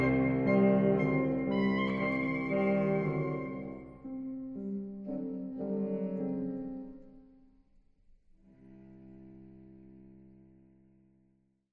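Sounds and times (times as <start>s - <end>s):
oboe song: 0.0s - 7.3s.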